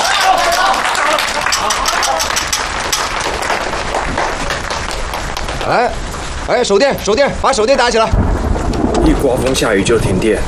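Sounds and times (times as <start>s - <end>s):
group applause: 0.0s - 6.0s
speech: 5.7s - 8.2s, 9.0s - 10.4s.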